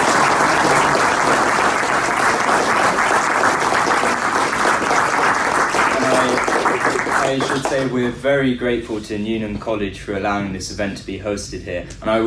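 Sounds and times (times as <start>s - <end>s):
audience round of applause: 0.0s - 7.9s
speech: 7.3s - 12.2s.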